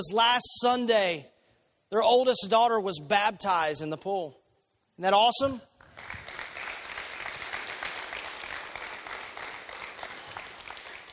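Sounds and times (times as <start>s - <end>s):
speech: 0.0s - 4.4s, 5.0s - 6.2s
crowd applause: 5.8s - 11.1s.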